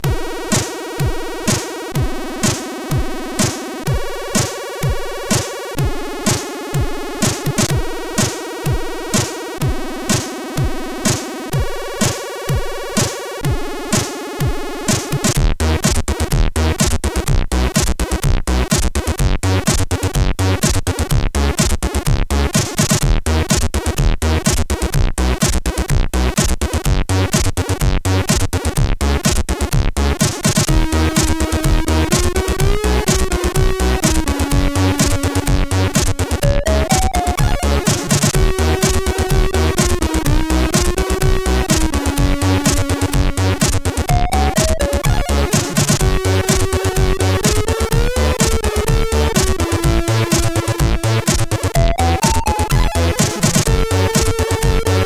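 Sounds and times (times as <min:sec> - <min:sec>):
music on SID chip CSG8580R5: 0:00.0 - 0:55.0.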